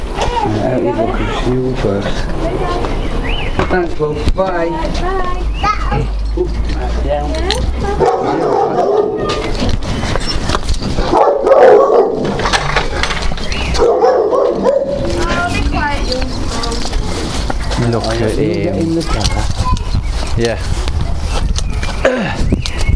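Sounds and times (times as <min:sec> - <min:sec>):
children's and adults' voices chattering: 0:00.0 - 0:22.9
speech: 0:00.4 - 0:08.8, 0:17.9 - 0:19.6, 0:20.4 - 0:20.9
little dog barking and yapping: 0:07.9 - 0:09.5, 0:11.0 - 0:12.3, 0:13.8 - 0:15.4.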